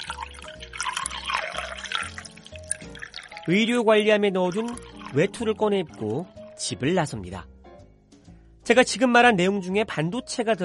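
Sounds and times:
coffee machine making hot coffee: 0.0s - 3.5s
speech: 3.4s - 7.5s, 8.7s - 10.6s.

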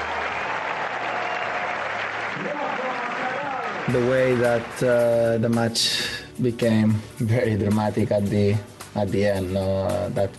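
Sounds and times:
crowd applause for Rafa at tennis match in New York: 0.0s - 5.3s
speech: 3.9s - 10.3s.

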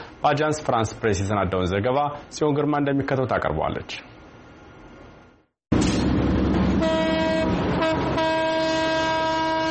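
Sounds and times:
speech: 0.2s - 4.1s
old train rumbling leaving a station on a century-old French-built Ethiopian railway line: 5.7s - 9.7s
old train horn blast: 6.5s - 9.7s.

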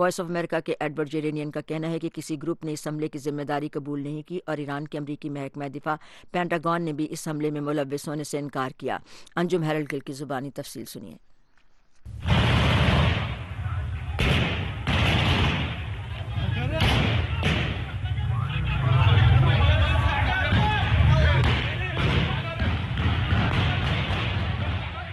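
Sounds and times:
speech: 0.0s - 11.3s
explosions: 12.1s - 25.1s
people shouting and screaming: 15.8s - 25.1s.

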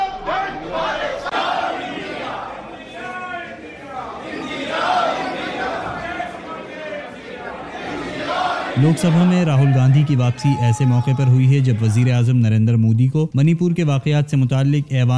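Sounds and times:
opposition MPs chanting slogans in India's Lok Sabha: 0.0s - 10.0s
overlapping shouts and chatter: 0.0s - 12.3s
speech: 8.8s - 15.1s.

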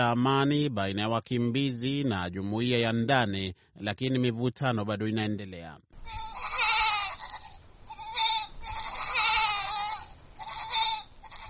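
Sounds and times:
speech: 0.0s - 6.3s
goats bleating in the village of Aramba near a refugee camp: 6.0s - 11.4s.

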